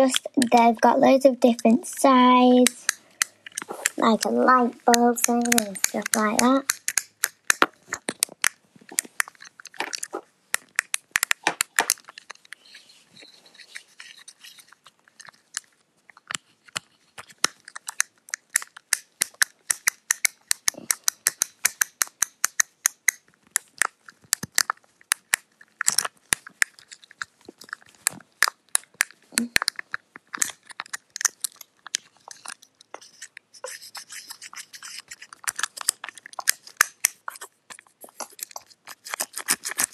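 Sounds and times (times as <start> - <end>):
speech: 0.0 - 3.0, 3.7 - 6.8
plastic fidget cube clicking and tapping: 0.0 - 12.8, 13.6 - 39.9.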